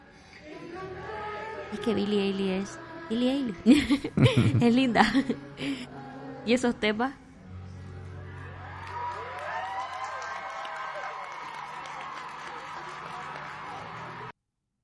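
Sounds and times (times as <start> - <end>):
speech: 1.7 - 7.2
laughter: 3.6 - 5.5
fans applauding: 8.1 - 14.3.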